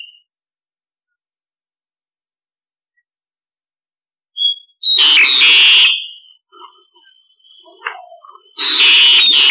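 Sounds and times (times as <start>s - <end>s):
starling harsh rasping calls: 4.4s - 9.5s.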